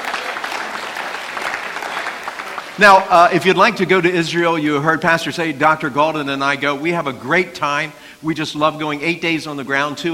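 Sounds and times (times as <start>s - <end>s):
crowd applauding: 0.0s - 3.7s
speech: 2.8s - 10.1s.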